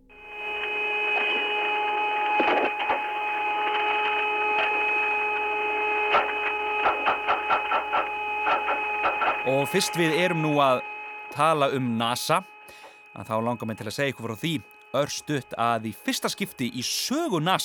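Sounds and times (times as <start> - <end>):
eerie electromagnetic interference drone of high tones: 0.0 - 17.6
crackling bursts and clicks: 0.6 - 11.5, 14.4 - 15.0
speech: 9.6 - 12.5, 13.2 - 17.6.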